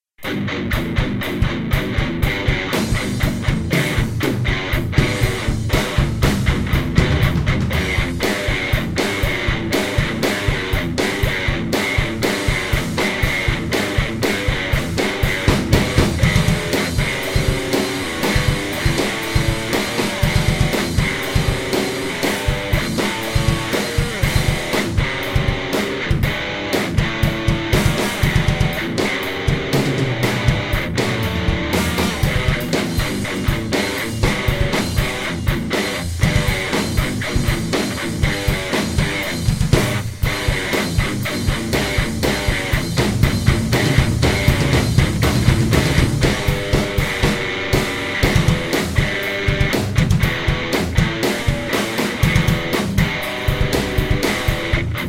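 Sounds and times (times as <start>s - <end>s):
metal music: 0.2s - 55.0s.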